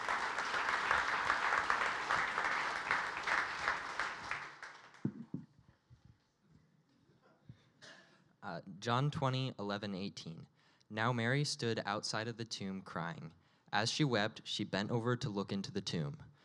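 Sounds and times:
audience round of applause: 0.0 - 5.3
speech: 8.6 - 16.3.

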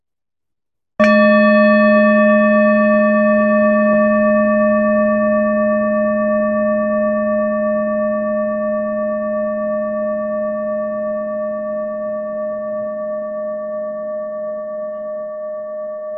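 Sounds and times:
meditation bell ringing: 1.0 - 16.1.

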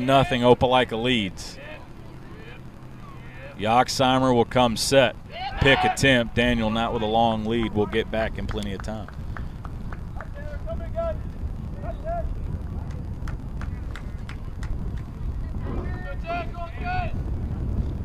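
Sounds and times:
speech: 0.0 - 1.6, 3.6 - 9.2
wind gusting across the microphone at a high school baseball game: 0.0 - 18.0.

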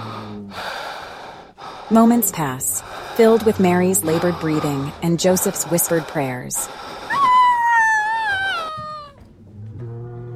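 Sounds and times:
speech: 1.9 - 7.0
newborn baby crying: 7.1 - 9.2.

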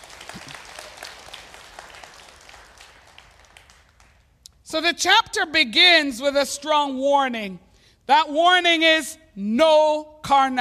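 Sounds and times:
audience applause: 0.0 - 4.2
speech: 4.7 - 10.6.

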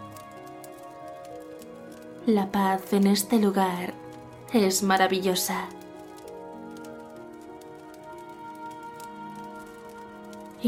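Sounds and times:
fire crackling: 0.0 - 10.6
speech: 2.3 - 5.8.

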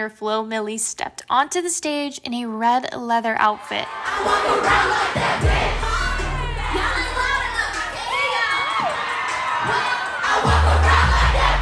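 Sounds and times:
speech: 0.0 - 6.1
large concert crowd cheering and screaming: 3.6 - 11.6
loud bass-heavy surge: 5.4 - 8.0, 10.5 - 11.6.

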